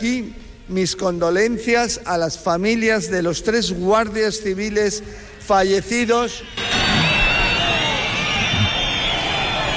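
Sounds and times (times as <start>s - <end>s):
speech: 0.0s - 6.6s
crowd booing a minister: 6.6s - 9.7s.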